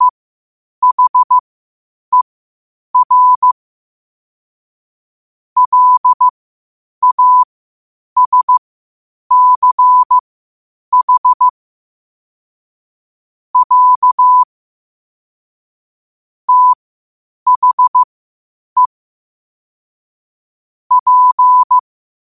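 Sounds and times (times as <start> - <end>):
morse code at 5 wpm: 0.8 - 1.4, 3.0 - 3.6, 5.6 - 6.3, 7.0 - 7.5, 8.2 - 8.6, 9.3 - 10.2, 10.9 - 11.5, 13.6 - 14.5, 16.5 - 16.8, 17.5 - 18.1, 20.9 - 21.8.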